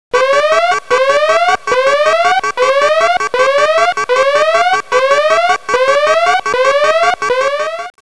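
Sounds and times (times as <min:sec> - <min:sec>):
alarm: 0:00.2 - 0:08.0.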